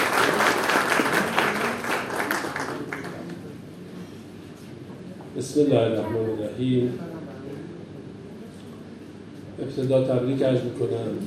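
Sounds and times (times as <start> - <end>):
audience applause at an official gathering in Hamadan province: 0.0 - 3.5
speech: 5.4 - 7.1, 9.7 - 11.2.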